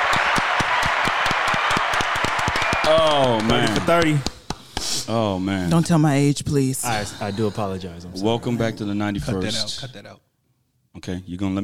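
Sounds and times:
round of applause: 0.0s - 4.6s
speech: 2.9s - 4.4s, 5.1s - 10.3s, 11.0s - 11.6s.

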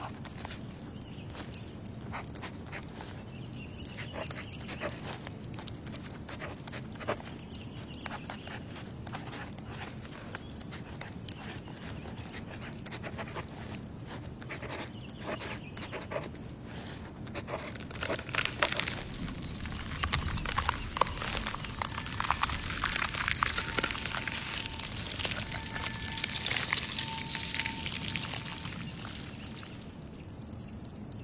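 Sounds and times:
wood fire crackling and squeaking: 0.0s - 31.2s
thin whistling squeak: 21.5s - 29.7s.

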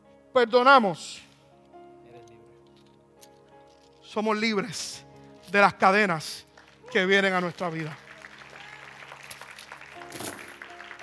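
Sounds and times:
speech: 0.4s - 1.3s, 4.1s - 8.0s
audience applauding: 6.5s - 11.0s.

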